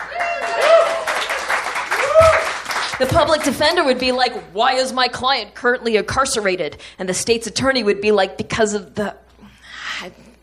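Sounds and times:
audience applause: 0.0s - 3.6s
speech: 3.0s - 9.2s, 10.0s - 10.3s.

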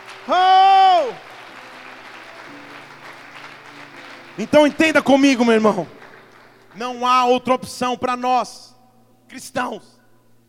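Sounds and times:
audience applauding: 0.0s - 7.7s
speech: 4.4s - 6.0s, 6.8s - 8.6s, 9.3s - 10.0s.

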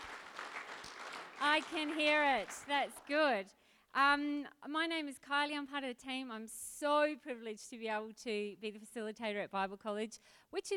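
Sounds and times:
audience round of applause: 0.0s - 2.9s
speech: 1.4s - 10.7s.

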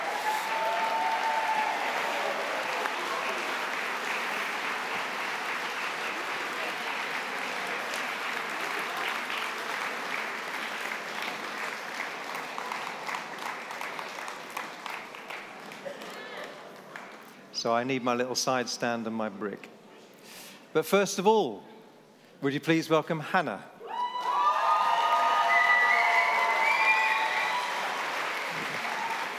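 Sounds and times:
applause: 0.0s - 17.4s, 23.9s - 29.3s
speech: 17.6s - 19.8s, 20.7s - 21.7s, 22.4s - 23.7s.

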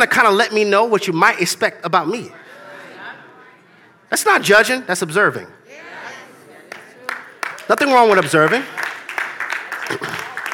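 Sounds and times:
speech: 0.0s - 2.6s, 4.1s - 5.8s, 7.7s - 8.8s
quiet audience clapping: 6.6s - 10.5s.

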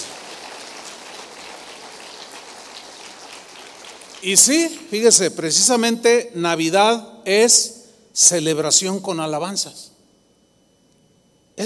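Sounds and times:
applause: 0.0s - 5.2s
speech: 4.2s - 9.9s.

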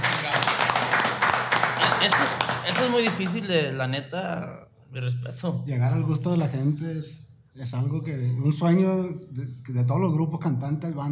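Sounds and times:
audience applause: 0.0s - 3.5s
speech: 2.0s - 11.1s.

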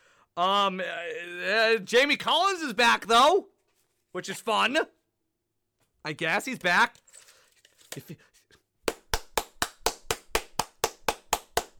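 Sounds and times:
speech: 0.4s - 3.5s, 4.2s - 5.0s, 6.0s - 7.0s, 7.9s - 8.3s
hand clapping: 8.8s - 11.7s.

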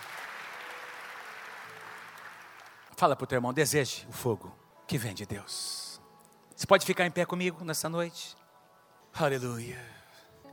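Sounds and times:
large crowd applauding: 0.0s - 2.9s
speech: 3.0s - 5.9s, 6.6s - 8.4s, 9.2s - 10.0s.

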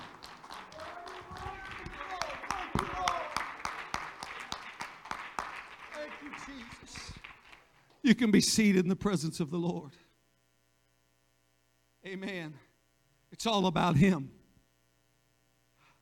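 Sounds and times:
audience clapping hands: 0.0s - 8.0s
speech: 8.0s - 10.0s, 13.4s - 14.4s.

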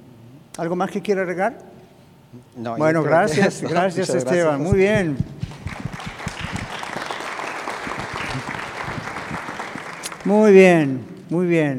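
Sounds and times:
speech: 0.6s - 1.7s, 2.3s - 5.3s, 10.3s - 11.7s
audience applause: 5.4s - 10.5s
laughter: 6.2s - 10.0s.

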